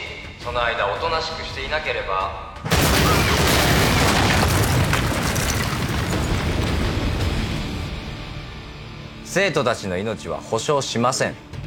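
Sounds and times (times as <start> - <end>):
speech: 0.4 - 3.3, 9.3 - 11.5
explosion of a small remotely detonated warehouse in a drama: 2.7 - 8.1.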